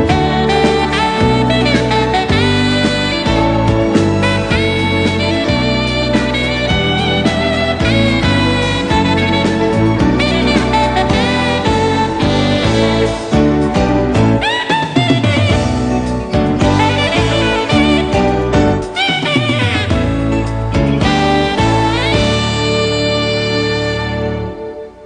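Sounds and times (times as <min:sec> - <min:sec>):
saxophone: 0:00.0 - 0:25.0.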